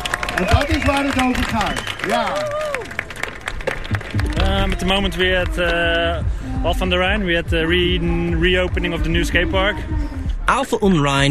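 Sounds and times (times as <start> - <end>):
crowd applause: 0.0 - 6.2
speech: 0.4 - 2.6, 4.4 - 11.2.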